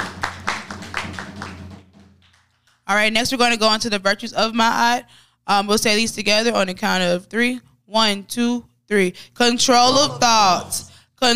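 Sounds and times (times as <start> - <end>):
audience clapping in rhythm: 0.0 - 2.9
speech: 2.9 - 11.3.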